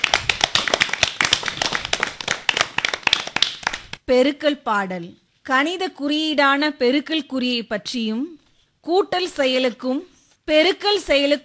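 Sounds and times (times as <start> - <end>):
audience applause praising a student's Tamil pronunciation: 0.0 - 3.9
speech: 4.1 - 11.4.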